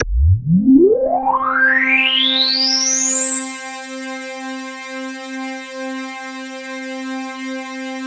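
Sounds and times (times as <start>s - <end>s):
KORG DW8000 vintage synthesizer keyboard: 0.0s - 2.7s.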